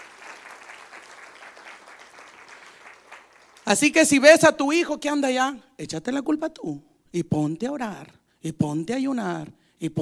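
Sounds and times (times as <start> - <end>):
audience applauding: 0.0 - 3.8
speech: 3.7 - 10.0.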